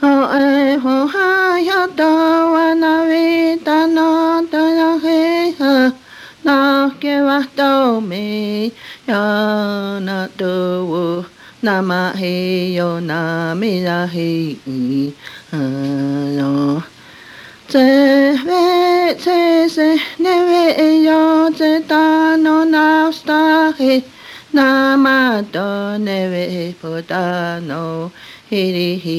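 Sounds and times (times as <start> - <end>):
hymn from a hymnbook: 0.0 - 17.0, 17.6 - 29.1.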